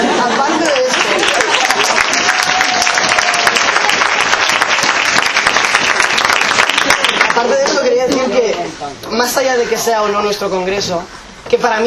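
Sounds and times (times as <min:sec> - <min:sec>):
audience applause: 0:00.1 - 0:07.9
speech: 0:09.5 - 0:11.8.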